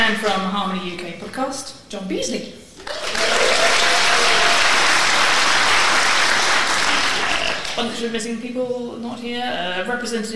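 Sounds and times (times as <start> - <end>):
speech: 0.1 - 3.9, 7.8 - 10.3
crowd clapping: 2.8 - 8.0.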